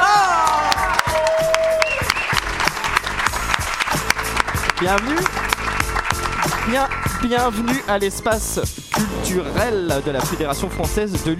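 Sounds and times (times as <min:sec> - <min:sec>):
audience at the cultural space of the French Federation for UNESCO applauding and cheering: 0:00.0 - 0:07.2
speech: 0:04.8 - 0:05.4, 0:06.6 - 0:11.3.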